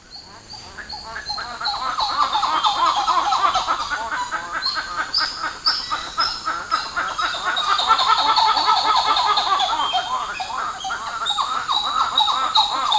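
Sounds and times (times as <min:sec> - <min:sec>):
birds duetting: 0:00.0 - 0:12.9
steady insect hiss: 0:00.0 - 0:12.9.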